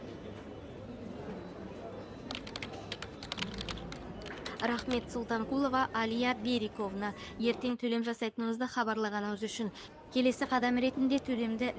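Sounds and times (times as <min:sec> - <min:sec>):
typing on a computer keyboard: 0:02.3 - 0:05.2
speech: 0:04.6 - 0:11.7.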